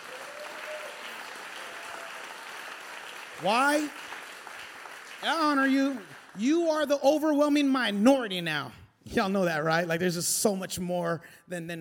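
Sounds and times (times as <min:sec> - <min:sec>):
audience clapping hands: 0:00.0 - 0:07.8
speech: 0:03.4 - 0:04.2, 0:05.2 - 0:11.7.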